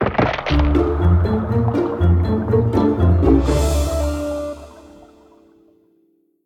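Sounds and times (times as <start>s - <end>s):
free spin outro music: 0.5s - 5.3s.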